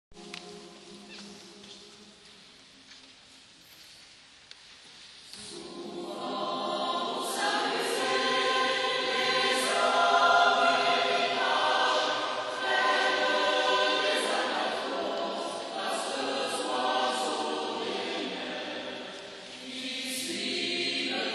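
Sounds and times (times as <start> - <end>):
vocal ensemble singing: 5.3 - 21.3.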